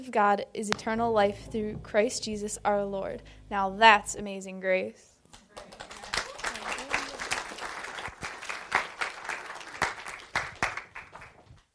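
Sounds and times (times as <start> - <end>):
speech: 0.0 - 5.9
audience applause: 5.5 - 11.6.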